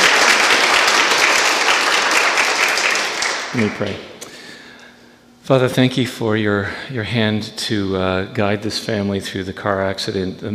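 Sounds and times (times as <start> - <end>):
audience applauding: 0.0 - 4.0
speech: 3.6 - 4.1, 5.5 - 10.5.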